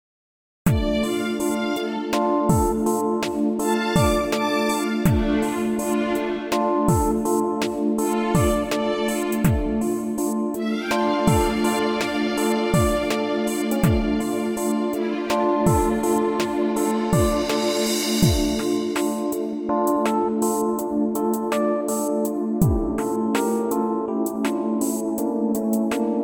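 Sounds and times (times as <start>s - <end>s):
modern piano backing track: 0.7s - 26.2s.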